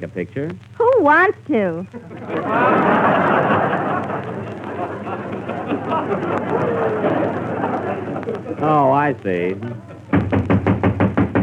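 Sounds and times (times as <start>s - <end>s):
speech: 0.0s - 3.5s, 5.9s - 7.6s, 8.3s - 9.9s
laughter: 2.0s - 10.2s
knocking on a door: 10.1s - 11.4s.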